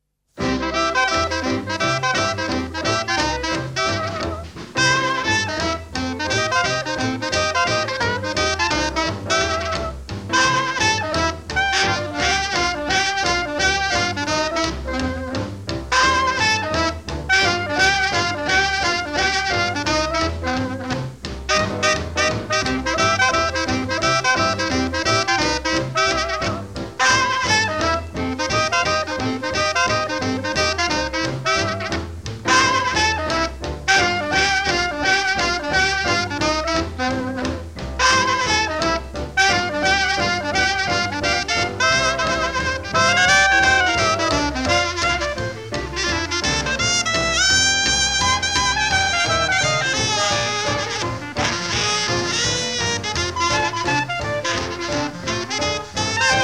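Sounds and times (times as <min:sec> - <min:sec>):
stomp: 0:00.4 - 0:56.4.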